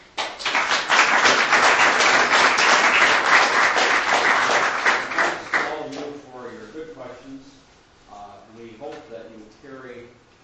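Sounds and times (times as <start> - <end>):
audience applause: 0.2 - 5.8.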